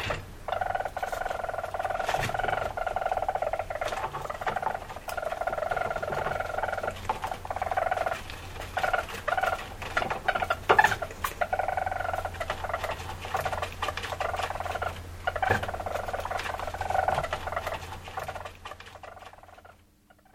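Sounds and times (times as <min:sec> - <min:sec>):
low background hum: 0:00.0 - 0:20.3
weasel purring trills: 0:00.0 - 0:20.3.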